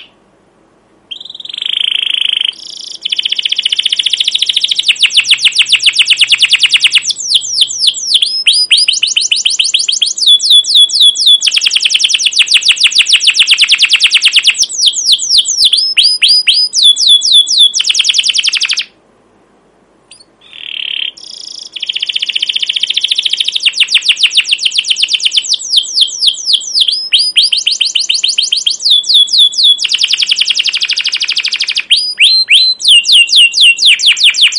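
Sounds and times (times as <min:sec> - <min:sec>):
canary song: 0:00.0 - 0:00.2, 0:01.1 - 0:19.0, 0:20.1 - 0:34.5
faint low hum: 0:00.0 - 0:34.2.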